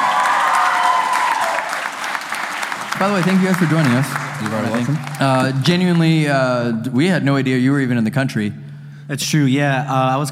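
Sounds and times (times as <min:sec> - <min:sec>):
audience applause: 0:00.0 - 0:06.5
speech: 0:03.0 - 0:10.3.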